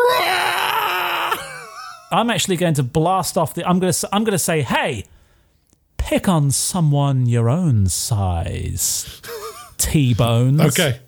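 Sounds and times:
voice imitating a horrendous scream: 0:00.0 - 0:01.5
laughter: 0:01.4 - 0:02.1
speech: 0:02.1 - 0:05.2, 0:06.1 - 0:11.0.

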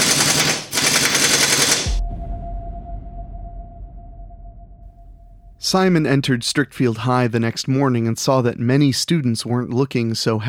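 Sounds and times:
Tommy gun firing as a sound effect: 0:00.0 - 0:02.0
low steady hum: 0:01.9 - 0:07.6
speech: 0:05.7 - 0:10.4.

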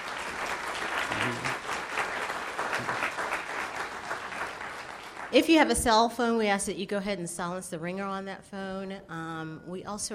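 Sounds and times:
audience applause: 0:00.0 - 0:05.4
speech: 0:05.3 - 0:10.1.

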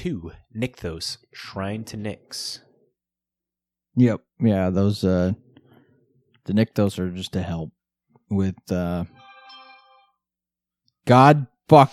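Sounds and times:
speech: 0:00.0 - 0:02.7, 0:04.0 - 0:05.4, 0:06.4 - 0:09.2, 0:11.1 - 0:11.9
Bejeweled phone game notification sound: 0:09.1 - 0:10.2.

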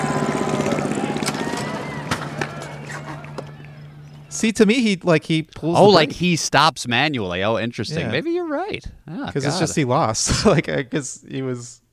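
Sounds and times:
small motor sputtering: 0:00.0 - 0:04.2
speech: 0:04.4 - 0:11.8.

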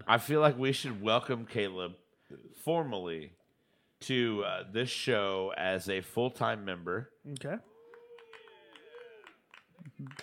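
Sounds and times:
speech: 0:00.1 - 0:03.4, 0:04.0 - 0:07.7, 0:09.8 - 0:10.2
applause: 0:07.6 - 0:10.2.

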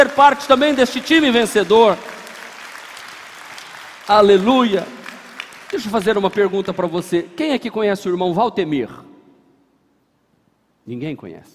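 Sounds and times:
speech: 0:00.0 - 0:02.1, 0:04.1 - 0:05.0, 0:05.7 - 0:09.1, 0:10.9 - 0:11.5
audience applause: 0:00.0 - 0:07.1.

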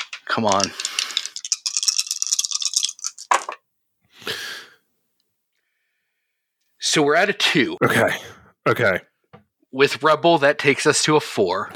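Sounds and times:
dice shaken in a cupped hand and rolled: 0:00.0 - 0:03.6
speech: 0:00.3 - 0:00.9, 0:06.9 - 0:09.1, 0:09.7 - 0:11.7.

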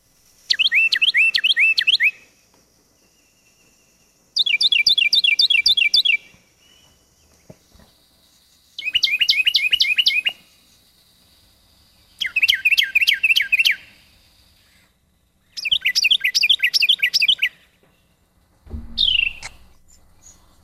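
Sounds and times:
Carolina Wren song and calls: 0:00.5 - 0:10.9, 0:11.8 - 0:18.2, 0:18.8 - 0:20.6.

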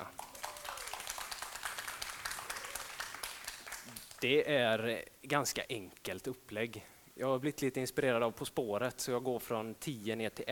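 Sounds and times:
applause: 0:00.0 - 0:04.3
speech: 0:04.2 - 0:10.5.

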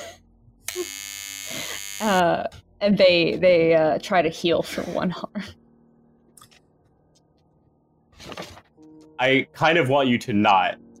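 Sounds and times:
hand buzzer joke zap: 0:00.7 - 0:02.2
speech: 0:02.0 - 0:05.6, 0:09.2 - 0:10.8.

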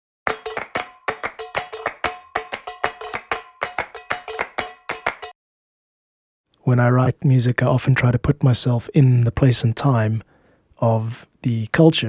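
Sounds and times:
group clapping rhythm: 0:00.3 - 0:05.3
tuna tin banged with two knives: 0:00.3 - 0:05.3
speech: 0:06.6 - 0:12.0.

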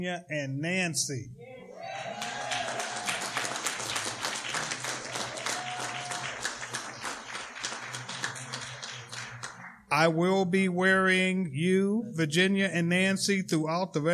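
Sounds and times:
speech: 0:00.0 - 0:01.5, 0:09.9 - 0:14.1
conference audience applause: 0:01.8 - 0:09.8.

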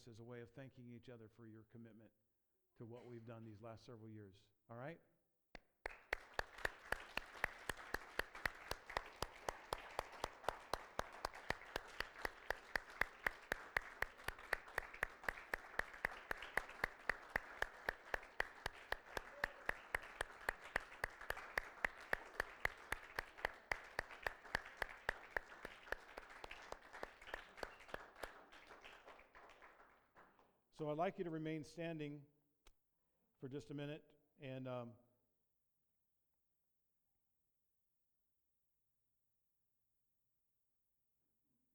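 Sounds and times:
speech: 0:00.0 - 0:05.1, 0:30.8 - 0:32.3, 0:33.4 - 0:35.0
large audience applauding: 0:05.9 - 0:30.4.

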